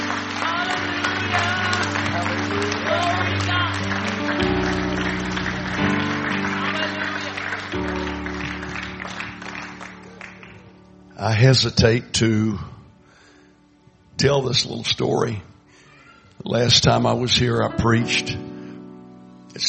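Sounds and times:
audience clapping: 0:00.0 - 0:11.0
speech: 0:11.2 - 0:12.7, 0:14.2 - 0:15.5, 0:16.4 - 0:18.5.

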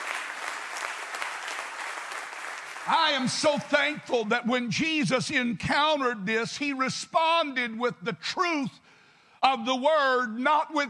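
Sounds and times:
audience clapping: 0:00.0 - 0:04.2
speech: 0:02.9 - 0:10.8.

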